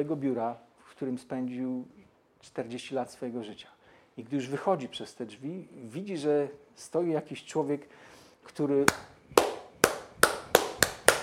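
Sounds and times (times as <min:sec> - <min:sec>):
speech: 0:00.0 - 0:09.4
person clapping: 0:08.9 - 0:11.2.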